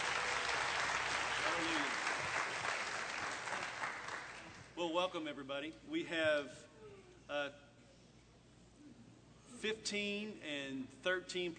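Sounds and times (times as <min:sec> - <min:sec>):
audience applause: 0:00.0 - 0:04.7
speech: 0:04.8 - 0:06.7, 0:07.3 - 0:07.6, 0:09.5 - 0:11.5.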